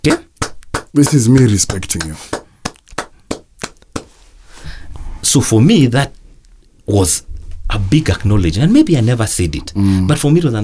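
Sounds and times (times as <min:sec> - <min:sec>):
hand claps: 0:00.0 - 0:04.2
speech: 0:00.9 - 0:02.4, 0:05.3 - 0:06.2, 0:06.9 - 0:10.6.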